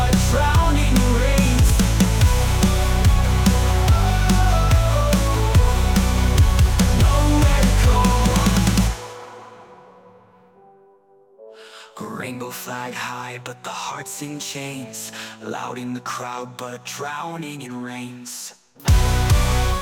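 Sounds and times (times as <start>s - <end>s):
metal ballad: 0.0s - 10.3s, 18.9s - 19.8s.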